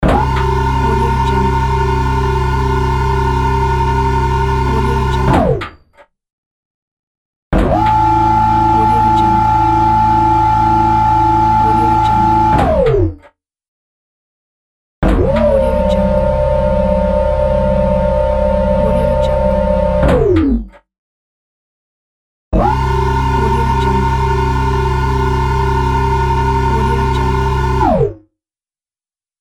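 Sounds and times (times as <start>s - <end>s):
robotic mechanism: 0.0s - 6.0s, 7.6s - 13.1s, 15.0s - 20.8s, 22.6s - 28.1s.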